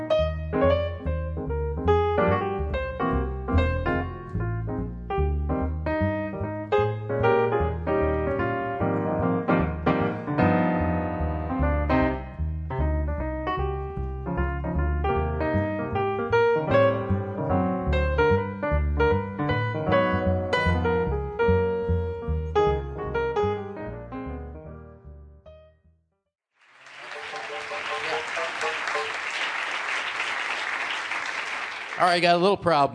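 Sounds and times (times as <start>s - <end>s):
bass playing a walking bass line: 0.0s - 25.4s
piano playing a Christmas tune: 0.0s - 25.9s, 26.7s - 32.0s
speech: 32.1s - 32.9s.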